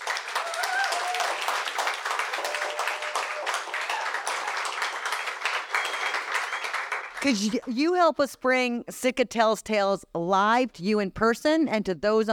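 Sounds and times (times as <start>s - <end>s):
audience clapping: 0.0s - 7.8s
speech: 7.2s - 12.3s.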